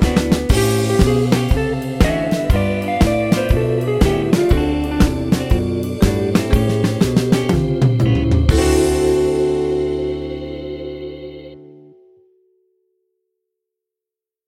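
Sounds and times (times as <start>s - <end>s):
drums: 0.0s - 11.2s
guitar: 0.0s - 12.7s.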